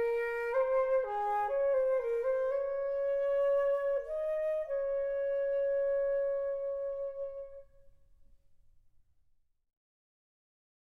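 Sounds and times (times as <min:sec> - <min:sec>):
solo flute: 0:00.0 - 0:08.0.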